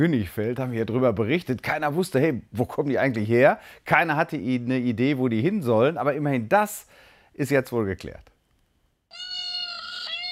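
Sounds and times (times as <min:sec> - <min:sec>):
speech: 0:00.0 - 0:08.3
peacock call played back from a phone: 0:09.1 - 0:10.3.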